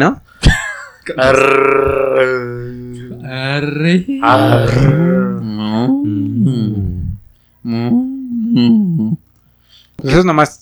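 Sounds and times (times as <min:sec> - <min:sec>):
speech: 0:00.0 - 0:00.2, 0:01.1 - 0:07.0, 0:07.6 - 0:09.2, 0:10.0 - 0:10.6
person imitating a camel with a throaty groaning bellow: 0:01.2 - 0:09.2.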